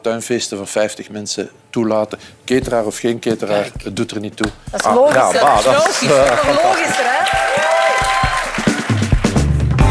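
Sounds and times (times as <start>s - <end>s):
speech: 0.0s - 7.4s
laughter: 4.8s - 7.3s
studio audience applause: 4.8s - 9.8s.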